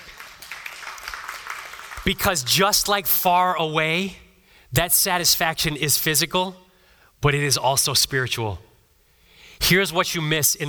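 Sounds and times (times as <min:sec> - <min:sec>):
crowd clapping: 0:00.0 - 0:02.3
speech: 0:02.0 - 0:06.6, 0:07.2 - 0:08.7, 0:09.6 - 0:10.6.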